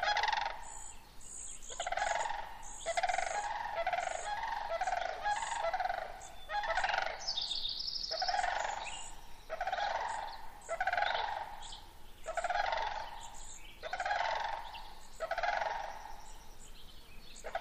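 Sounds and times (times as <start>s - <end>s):
sandhill cranes calling: 0.0s - 16.5s.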